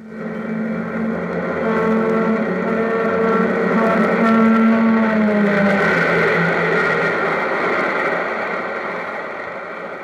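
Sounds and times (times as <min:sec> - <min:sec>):
train whistle lowering in pitch as the train rushes past: 0:00.0 - 0:07.4
train rushing past: 0:00.0 - 0:10.0.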